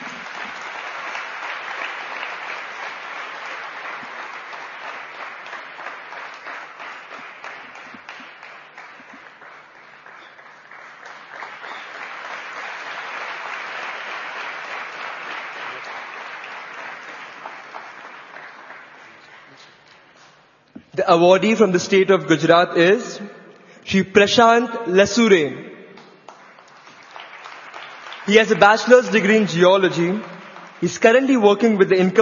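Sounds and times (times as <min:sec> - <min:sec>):
loud round of applause: 0:00.0 - 0:19.9, 0:26.0 - 0:32.2
speech: 0:21.0 - 0:23.3, 0:23.9 - 0:25.6, 0:28.3 - 0:32.2.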